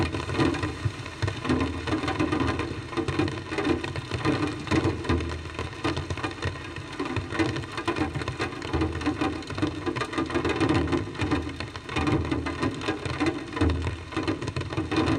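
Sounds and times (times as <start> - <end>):
drums in the rain with loudspeaker tape echo: 0.0 - 15.1.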